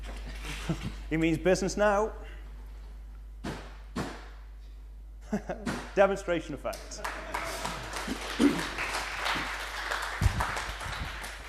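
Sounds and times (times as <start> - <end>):
speech: 0.7 - 2.3, 5.3 - 7.2
audience applause: 6.8 - 11.4.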